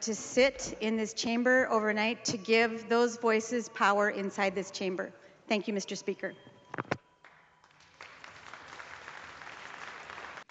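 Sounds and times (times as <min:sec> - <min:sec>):
speech: 0:00.0 - 0:06.9
applause in legislature: 0:07.6 - 0:10.5.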